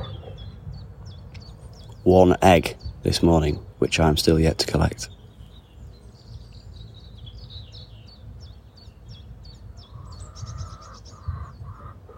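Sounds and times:
small birds chirping: 0.0s - 12.1s
speech: 2.0s - 5.2s
hen clucking: 9.9s - 12.1s.

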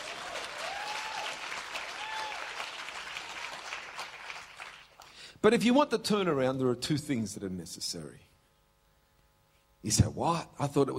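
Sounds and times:
whistles and cheers: 0.0s - 2.9s
audience clapping: 0.0s - 5.2s
speech: 5.4s - 8.3s, 9.8s - 10.9s.

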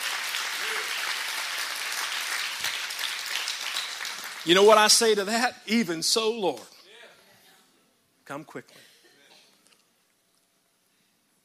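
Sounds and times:
audience applause: 0.0s - 5.2s
speech: 4.4s - 6.8s, 8.3s - 8.9s.

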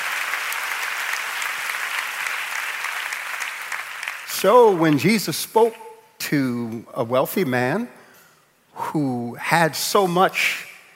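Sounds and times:
audience clapping hands: 0.0s - 5.1s
speech: 4.4s - 8.0s, 8.9s - 10.6s.

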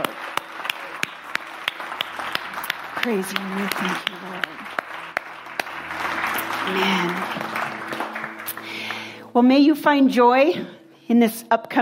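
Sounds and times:
audience applauding: 0.0s - 9.3s
speech: 3.0s - 4.5s, 6.7s - 7.5s, 9.3s - 11.8s.

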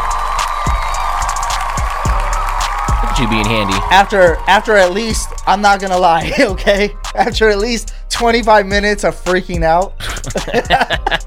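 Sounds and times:
applause: 0.0s - 5.5s
cheering: 0.0s - 6.3s
speech: 3.2s - 11.2s
laughter: 5.9s - 7.4s, 10.0s - 11.2s.

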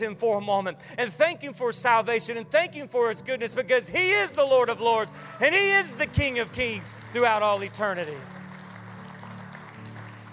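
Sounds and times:
speech: 0.0s - 8.4s
audience clapping: 5.2s - 10.3s.

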